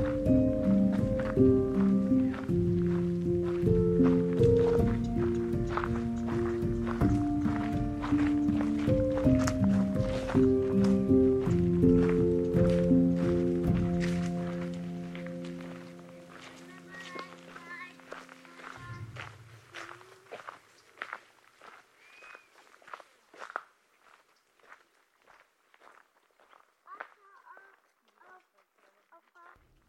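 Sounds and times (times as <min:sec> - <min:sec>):
sustained tones stepping between pitches: 0:00.0 - 0:21.8.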